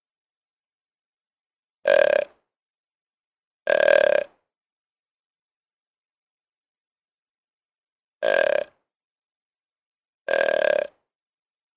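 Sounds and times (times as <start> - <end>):
deer bleating: 1.8 - 2.4, 3.7 - 4.4, 8.2 - 8.8, 10.3 - 11.0.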